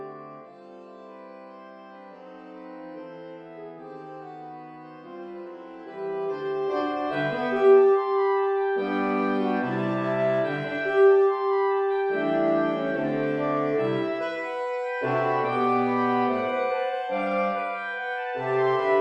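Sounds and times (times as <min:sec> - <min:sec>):
saxophone ensemble playing: 0:06.0 - 0:18.9.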